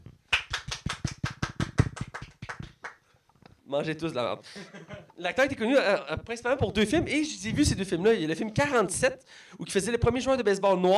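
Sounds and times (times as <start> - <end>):
people applauding: 0.1 - 3.0
speech: 3.7 - 10.9.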